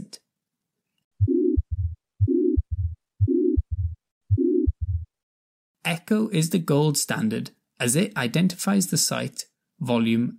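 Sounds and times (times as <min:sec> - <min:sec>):
heartbeats with pansystolic murmur of a ventricular septal defect: 0:01.2 - 0:05.2
speech: 0:05.8 - 0:10.3.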